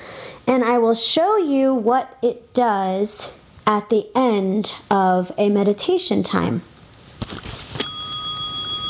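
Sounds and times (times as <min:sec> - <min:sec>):
speech: 0:00.5 - 0:07.3
soft rustling: 0:06.8 - 0:07.9
meditation app bell ringing: 0:07.8 - 0:08.8.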